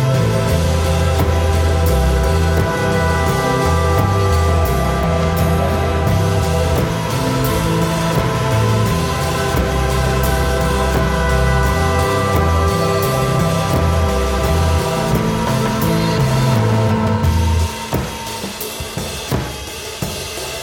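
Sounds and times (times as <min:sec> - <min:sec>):
low oscillator pad: 0:00.0 - 0:19.8
acoustic music in six-eight time: 0:00.0 - 0:20.2.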